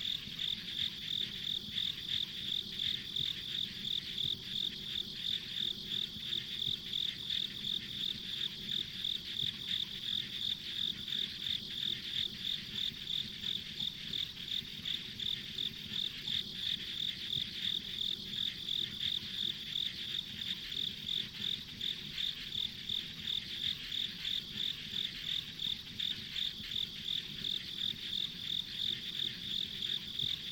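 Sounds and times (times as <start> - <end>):
insect chirping: 0.0 - 30.5.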